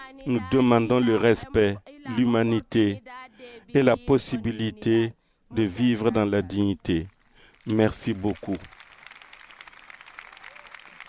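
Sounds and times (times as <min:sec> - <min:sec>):
speech: 0:00.1 - 0:08.8
faint audience applause for a woman speaker at an event attended by the pope: 0:07.0 - 0:11.0.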